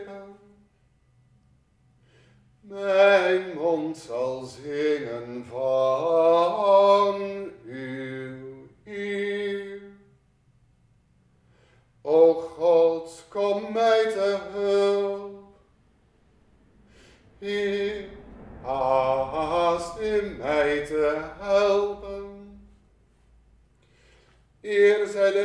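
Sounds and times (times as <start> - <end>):
tenor singing preces: 2.7 - 10.1, 12.1 - 22.8, 24.6 - 25.4.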